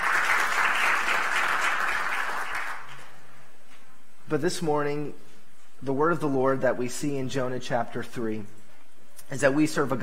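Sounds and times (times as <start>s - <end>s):
church congregation clapping in welcome during a morning service: 0.0s - 3.2s
speech: 4.3s - 8.6s, 9.3s - 10.0s.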